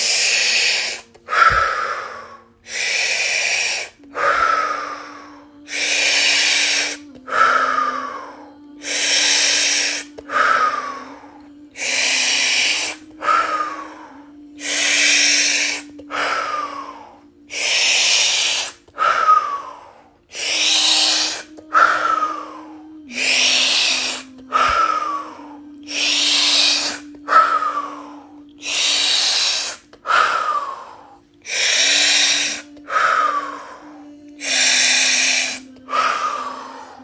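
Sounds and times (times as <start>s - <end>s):
deep breathing in and out during a breathing exercise: 0.0s - 37.0s.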